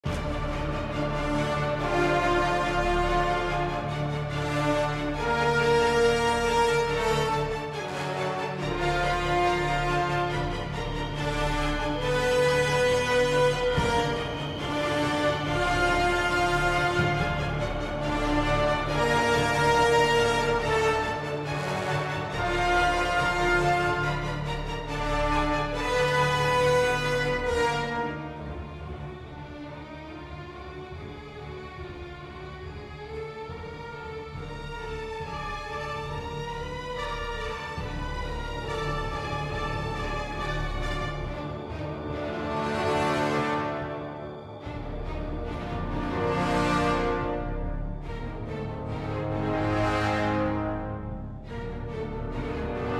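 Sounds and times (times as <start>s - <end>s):
tension music: 0.0s - 52.9s.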